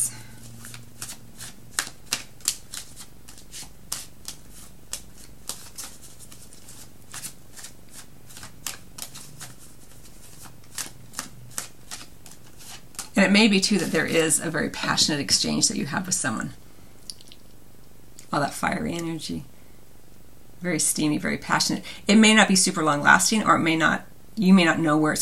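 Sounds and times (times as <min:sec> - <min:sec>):
After Tarot deck cards being handled and drawn: 0:00.5 - 0:13.2
speech: 0:13.2 - 0:16.6, 0:18.4 - 0:19.5, 0:20.6 - 0:25.2.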